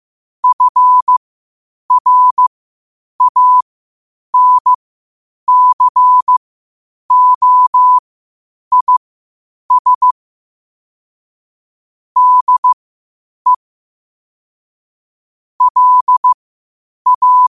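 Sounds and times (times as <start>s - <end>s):
morse code at 5 wpm: 0.4s - 1.2s, 1.9s - 2.5s, 3.2s - 3.6s, 4.4s - 4.8s, 5.5s - 6.4s, 7.1s - 8.0s, 8.7s - 9.0s, 9.7s - 10.2s, 12.2s - 12.8s, 15.6s - 16.4s, 17.1s - 17.5s.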